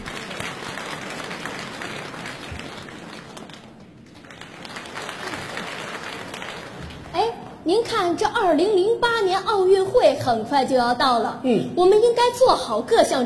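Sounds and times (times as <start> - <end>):
audience applause: 0.0 - 7.2
speech: 7.7 - 13.2.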